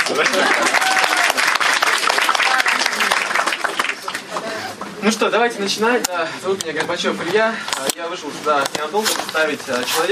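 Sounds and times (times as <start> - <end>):
audience applause: 0.0 - 5.0
speech: 0.1 - 1.0, 5.0 - 10.0.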